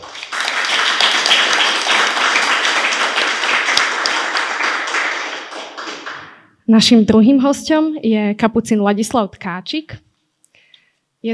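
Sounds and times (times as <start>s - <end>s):
audience applause: 0.0s - 6.5s
speech: 6.7s - 10.0s.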